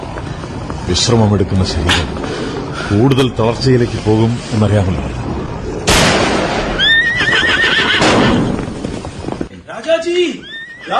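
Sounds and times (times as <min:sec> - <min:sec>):
rushing noise: 0:00.0 - 0:09.5
speech: 0:00.9 - 0:05.3, 0:10.1 - 0:10.9
horse whinnying while ridden at speed: 0:06.6 - 0:08.5, 0:10.3 - 0:10.9.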